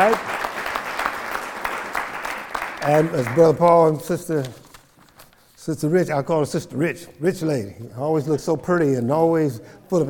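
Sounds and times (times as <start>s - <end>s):
speech: 0.0s - 0.4s, 2.8s - 4.6s, 5.6s - 10.0s
audience clapping: 0.0s - 4.0s.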